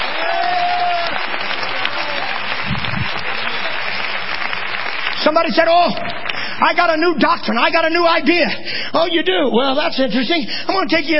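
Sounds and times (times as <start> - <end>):
audience clapping hands: 0.0 - 7.6
speech: 5.3 - 11.1.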